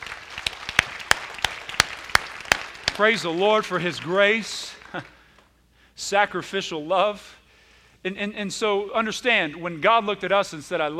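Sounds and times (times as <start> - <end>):
church congregation clapping: 0.0 - 5.5
speech: 3.0 - 5.2, 6.0 - 7.4, 8.0 - 10.9.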